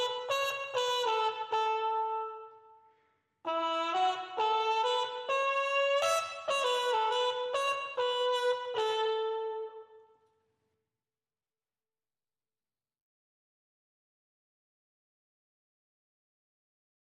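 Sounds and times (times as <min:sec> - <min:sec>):
trumpets: 0:00.0 - 0:02.6, 0:03.5 - 0:10.0.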